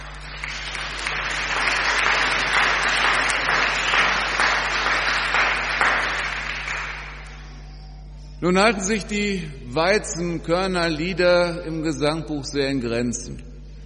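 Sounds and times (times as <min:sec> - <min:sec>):
audience applauding: 0:00.0 - 0:07.4
speech: 0:08.4 - 0:13.5.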